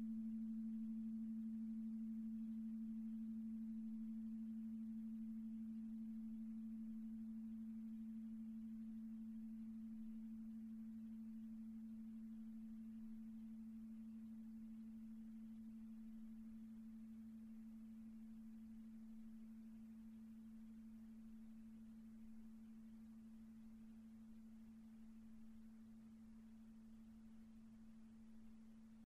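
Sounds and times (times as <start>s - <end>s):
iron singing bowl: 0.0s - 23.0s.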